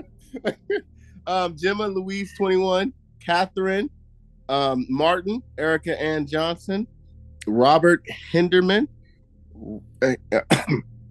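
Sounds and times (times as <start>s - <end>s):
laughter: 0.0s - 0.8s
speech: 0.3s - 9.0s, 9.6s - 10.9s
person coughing: 0.4s - 0.8s, 10.0s - 10.8s.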